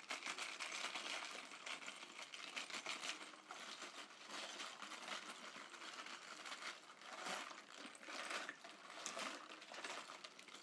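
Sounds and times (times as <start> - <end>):
improvised rain stick filled with ice rattling: 0.0 - 10.6.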